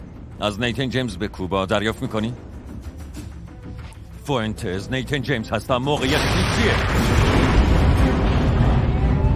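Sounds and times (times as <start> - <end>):
speech: 0.4 - 2.5, 4.3 - 7.2
ship being hit by an explosion: 6.2 - 9.2.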